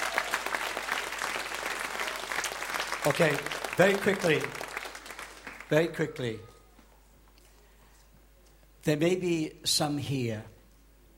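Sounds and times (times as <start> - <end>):
audience clapping hands in praise: 0.0 - 6.4
speech: 3.0 - 4.6, 5.7 - 6.5, 8.8 - 10.5.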